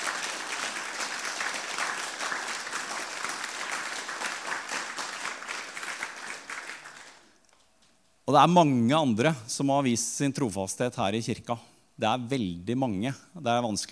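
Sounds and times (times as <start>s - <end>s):
audience applause: 0.0s - 7.4s
speech: 8.3s - 13.9s.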